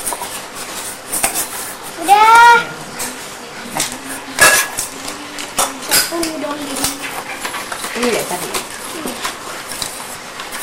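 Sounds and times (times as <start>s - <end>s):
utensil clinking and scraping against a pot while stirring food: 3.8s - 10.6s.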